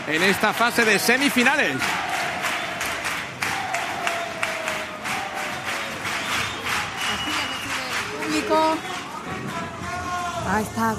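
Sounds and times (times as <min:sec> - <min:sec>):
ovation in Cádiz's Gran Teatro Falla for a carnival comparsa: 0:00.0 - 0:10.9
speech: 0:00.1 - 0:02.1, 0:08.4 - 0:08.9, 0:10.5 - 0:10.9.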